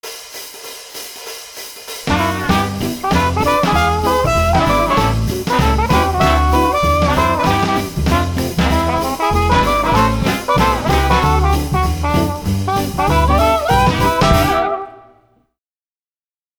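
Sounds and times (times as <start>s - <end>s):
trumpets jamming: 2.1s - 15.3s.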